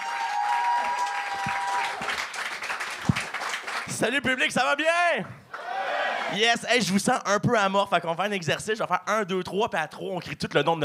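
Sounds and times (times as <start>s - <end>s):
audience applause: 0.0s - 4.0s
speech: 4.0s - 5.4s, 6.3s - 10.8s.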